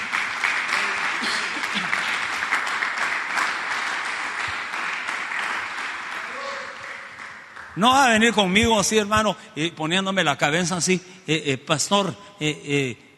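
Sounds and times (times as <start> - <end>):
audience applause: 0.0 - 7.8
speech: 7.8 - 13.1.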